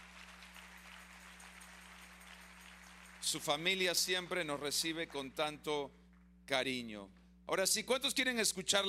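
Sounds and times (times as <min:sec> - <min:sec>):
audience applause: 0:00.0 - 0:05.4
speech: 0:03.2 - 0:08.8.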